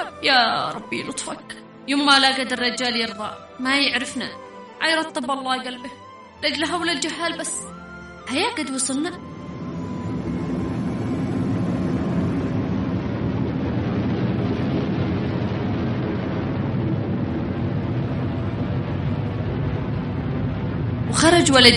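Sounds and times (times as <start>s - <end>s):
speech: 0.2s - 9.3s, 21.4s - 21.7s
aircraft flying overhead: 9.2s - 21.1s.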